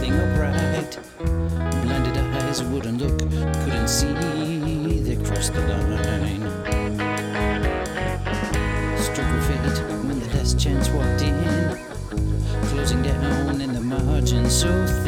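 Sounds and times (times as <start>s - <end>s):
bass effect: 0.0s - 15.0s.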